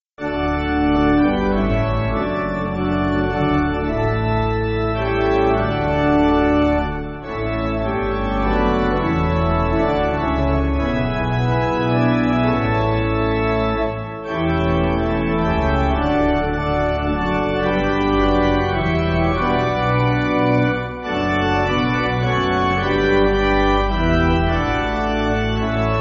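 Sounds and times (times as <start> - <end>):
pipe organ church music: 0.2 - 25.9.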